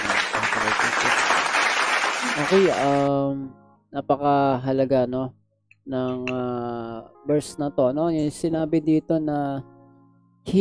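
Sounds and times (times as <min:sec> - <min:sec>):
congregation clapping after a Bible reading: 0:00.0 - 0:03.1
speech: 0:02.4 - 0:09.7, 0:10.4 - 0:10.6.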